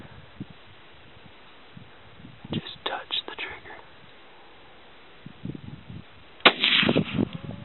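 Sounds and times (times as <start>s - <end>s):
people whispering: 2.5s - 4.0s
hunting rifle shot: 6.4s - 7.3s.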